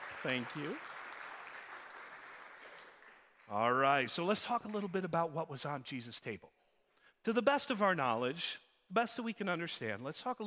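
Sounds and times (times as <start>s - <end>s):
audience applause: 0.0s - 4.9s
speech: 0.2s - 0.9s, 3.5s - 6.6s, 7.2s - 10.4s.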